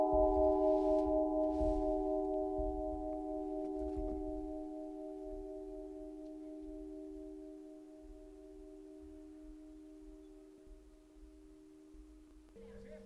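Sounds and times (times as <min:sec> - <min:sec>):
church bells ringing in Glori, Imperia, Liguria: 0:00.0 - 0:10.6.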